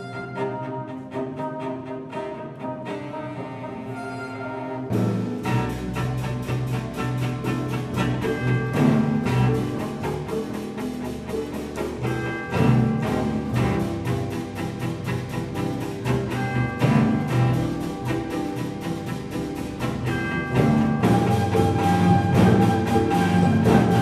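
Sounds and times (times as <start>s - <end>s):
cello: 0.0s - 24.0s
double bass: 0.0s - 24.0s
harp: 0.0s - 24.0s
timpani: 0.0s - 24.0s.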